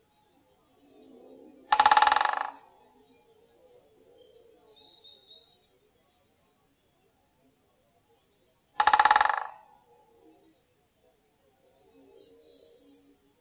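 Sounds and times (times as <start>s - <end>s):
great spotted woodpecker giving kik calls: 1.6s - 2.8s, 8.8s - 9.8s.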